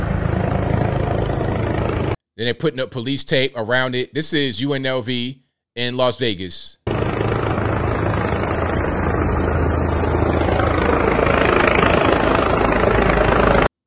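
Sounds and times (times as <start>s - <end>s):
helicopter flying overhead: 0.0s - 2.2s, 6.9s - 13.7s
speech: 2.4s - 6.8s.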